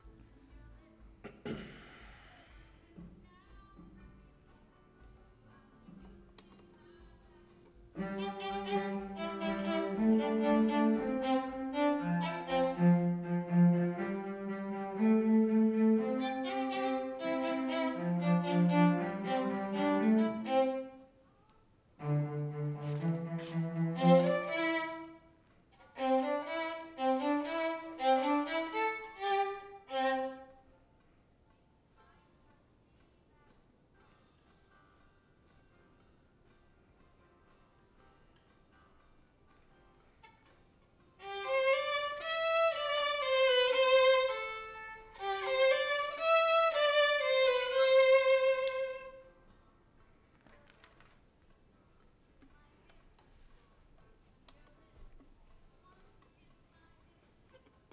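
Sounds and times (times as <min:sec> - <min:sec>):
violin: 0:02.5 - 0:21.2, 0:21.9 - 0:30.8, 0:40.0 - 0:51.6.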